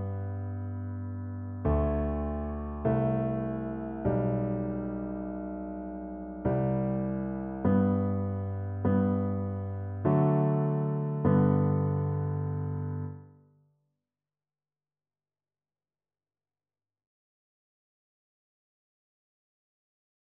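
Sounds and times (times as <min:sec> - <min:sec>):
piano duet: 0:00.0 - 0:13.4.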